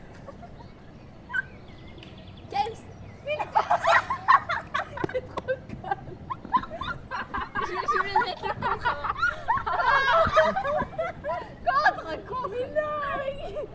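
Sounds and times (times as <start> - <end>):
French girls giggling: 3.2 - 13.7.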